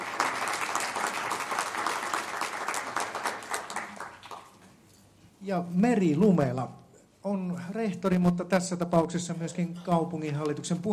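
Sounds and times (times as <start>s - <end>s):
audience applause: 0.0s - 4.6s
speech: 5.5s - 10.9s.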